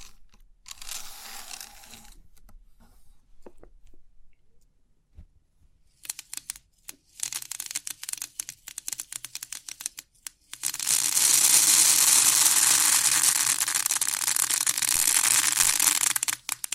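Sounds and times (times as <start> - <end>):
3D pin art ticking and clicking: 6.0 - 16.7.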